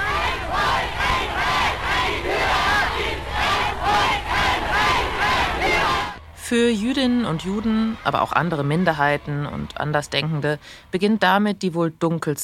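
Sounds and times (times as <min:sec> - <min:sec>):
crowd cheering at a rally: 0:00.0 - 0:11.6
speech: 0:06.5 - 0:12.4.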